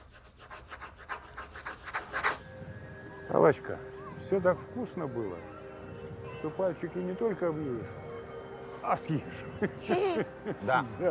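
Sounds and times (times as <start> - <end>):
pencil scribbling hard on paper: 0.0 - 2.4
speech: 3.3 - 5.6, 6.4 - 8.0, 8.8 - 11.0.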